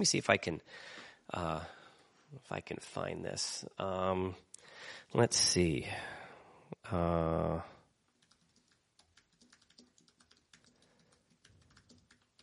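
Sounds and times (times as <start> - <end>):
speech: 0.0 - 6.2, 6.8 - 7.7
fast typing on a computer keyboard: 8.2 - 12.4.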